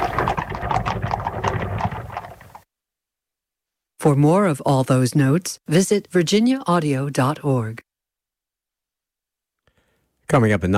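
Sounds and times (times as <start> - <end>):
horse-drawn carriage hooves clip-clopping: 0.0 - 2.6
horse-drawn carriage wheels rumbling: 0.0 - 2.6
speech: 4.0 - 7.8, 10.3 - 10.7.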